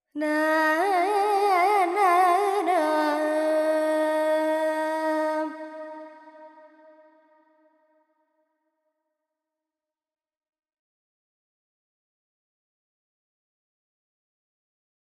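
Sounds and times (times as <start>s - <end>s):
Carnatic female vocal alap in Lydian mode with effects: 0.1s - 7.2s.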